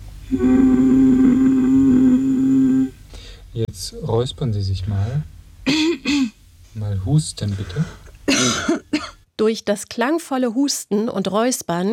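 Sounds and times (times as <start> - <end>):
person humming at a very low pitch: 0.2 - 3.0
speech: 0.3 - 1.0, 3.8 - 5.8, 6.9 - 8.8, 9.4 - 11.9.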